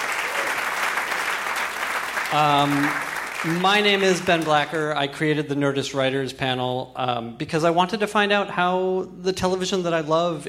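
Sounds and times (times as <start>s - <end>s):
audience applause: 0.0s - 4.7s
speech: 2.3s - 10.4s.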